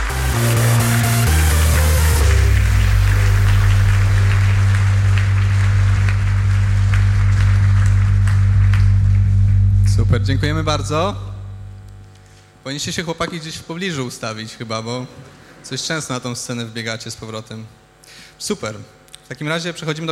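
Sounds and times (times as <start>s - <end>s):
audience applause: 0.0s - 9.8s
speech: 10.1s - 11.2s, 12.7s - 20.0s.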